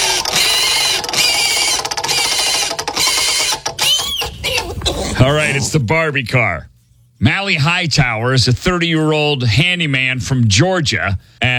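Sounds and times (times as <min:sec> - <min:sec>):
spinning prize wheel clicking: 0:00.0 - 0:04.7
speech: 0:05.2 - 0:11.5.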